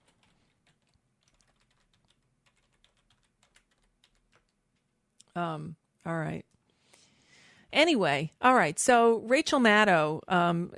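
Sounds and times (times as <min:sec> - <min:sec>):
typing a letter on a computer keyboard: 0:00.0 - 0:04.9
speech: 0:05.4 - 0:06.5, 0:07.8 - 0:10.7.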